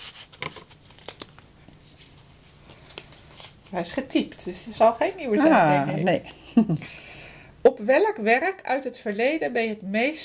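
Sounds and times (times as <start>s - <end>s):
paper question slip crinkling as it is drawn from a hat and unfolded: 0.0s - 4.2s
speech: 3.7s - 7.0s, 7.6s - 10.2s.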